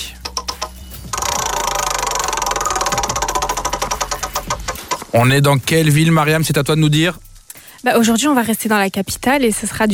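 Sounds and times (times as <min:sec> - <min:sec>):
prize wheel spinning and ticking: 0:00.1 - 0:05.1
speech: 0:05.1 - 0:07.2, 0:07.8 - 0:09.9.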